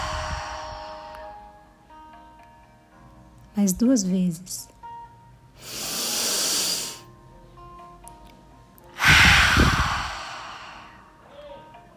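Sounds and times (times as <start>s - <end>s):
exhaling through a wide-open mouth during a guided meditation: 0.0s - 1.4s, 5.6s - 7.0s, 9.0s - 11.1s
speech: 3.6s - 4.8s.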